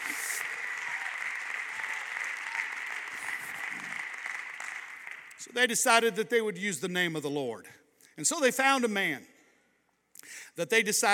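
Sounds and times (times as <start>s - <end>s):
audience clapping: 0.0s - 5.8s
speech: 5.4s - 9.3s, 10.6s - 11.1s.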